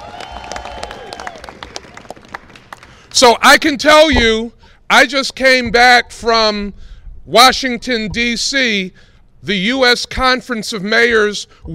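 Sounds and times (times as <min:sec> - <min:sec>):
large audience applause: 0:00.0 - 0:03.1
speech: 0:03.2 - 0:11.7.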